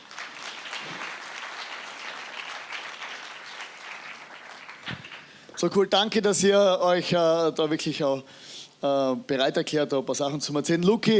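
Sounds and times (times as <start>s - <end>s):
audience applause: 0.0s - 5.5s
speech: 5.6s - 11.1s.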